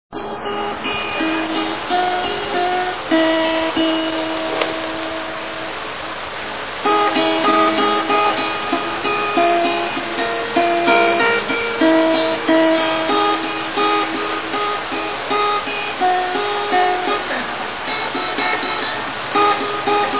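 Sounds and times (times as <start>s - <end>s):
acoustic guitar: 0.1s - 20.1s.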